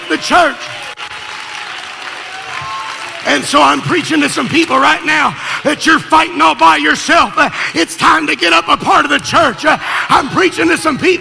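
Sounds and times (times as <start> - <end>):
audience clapping hands: 0.0 - 5.8
speech: 0.1 - 0.8, 3.2 - 11.2.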